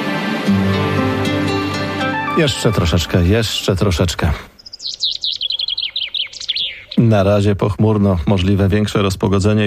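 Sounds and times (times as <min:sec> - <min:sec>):
skylark song: 0:00.1 - 0:07.2
speech: 0:02.4 - 0:04.5, 0:07.1 - 0:09.6.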